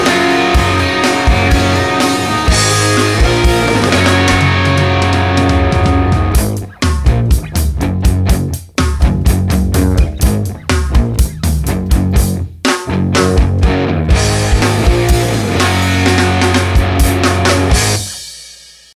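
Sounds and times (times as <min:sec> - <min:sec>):
hard rock music: 0:00.0 - 0:18.9.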